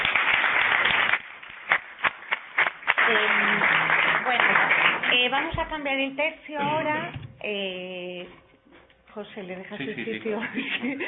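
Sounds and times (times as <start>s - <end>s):
audience applause: 0.0s - 5.7s
speech: 3.1s - 8.4s, 9.2s - 11.0s
laughter: 9.7s - 11.0s.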